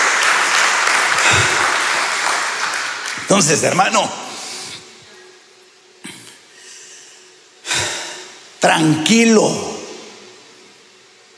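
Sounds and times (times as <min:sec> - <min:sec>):
audience clapping loudly: 0:00.0 - 0:04.0
speech: 0:03.3 - 0:04.2, 0:08.6 - 0:09.7.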